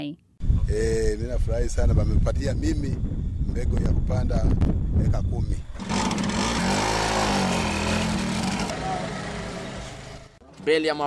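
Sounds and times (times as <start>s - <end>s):
speech: 0.0s - 6.7s, 10.6s - 11.0s
motorcycle engine pulling away: 5.7s - 10.4s.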